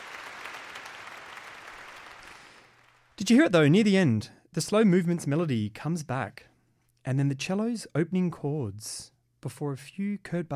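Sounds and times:
rapturous applause after a concert performance: 0.0s - 3.2s
speech: 3.2s - 10.5s.

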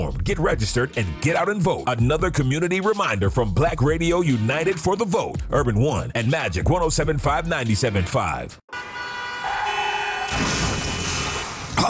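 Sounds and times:
speech: 0.0s - 9.0s
truck horn honking in a car accident sound effect: 8.7s - 11.7s.

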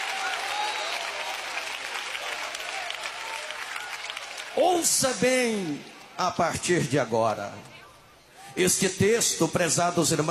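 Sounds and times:
audience applauding: 0.0s - 6.1s
faint crowd voices: 0.0s - 10.2s
speech: 4.6s - 7.8s, 8.6s - 10.2s.

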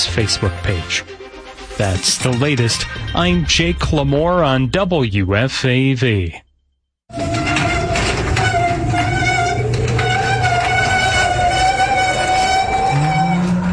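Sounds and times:
speech: 0.2s - 1.2s, 1.8s - 6.4s
noisy old garage door rattling and grinding: 7.1s - 13.0s
steady metallic whine: 7.1s - 13.7s.

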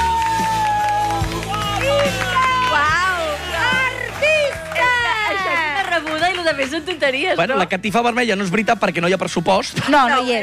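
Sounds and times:
audience applause: 0.0s - 7.2s
speech: 6.6s - 10.4s.

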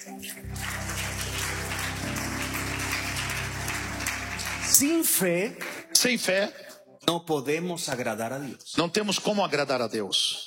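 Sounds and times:
speech: 0.0s - 0.7s, 4.8s - 10.4s
audience applause: 0.4s - 5.9s.

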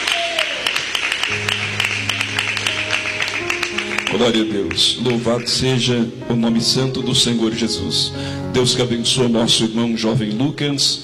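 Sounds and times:
crowd clapping: 0.0s - 6.0s
speech: 1.3s - 1.7s, 4.1s - 11.0s
low sustained keyboard chord: 1.3s - 11.0s.

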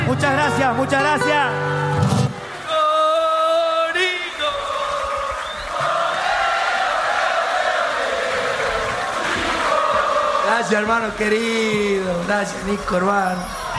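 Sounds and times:
speech: 0.1s - 2.1s, 10.6s - 13.6s
audience applause and cheering: 2.0s - 12.2s.

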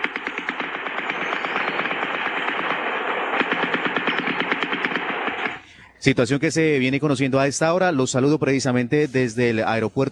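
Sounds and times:
gunfire from armed combat: 0.0s - 5.8s
speech: 6.0s - 10.0s.

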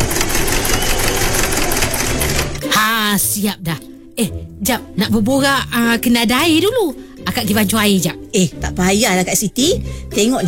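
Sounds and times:
sewing machine stitching clothes: 0.0s - 2.6s
speech: 3.4s - 10.4s.

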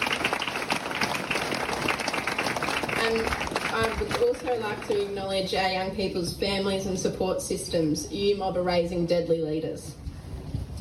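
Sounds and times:
soft audience clapping at an award ceremony for young people: 0.0s - 5.3s
speech: 3.0s - 10.0s.

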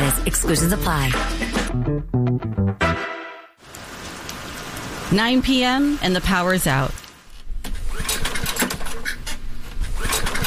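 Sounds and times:
speech: 0.2s - 2.0s, 5.1s - 7.0s
portable generator failing to start cranking in a basement: 7.6s - 10.4s.

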